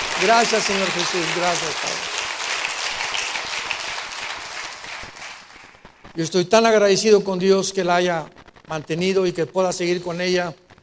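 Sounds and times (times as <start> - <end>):
audience applause: 0.0 - 6.1
speech: 0.2 - 2.1, 6.2 - 10.6.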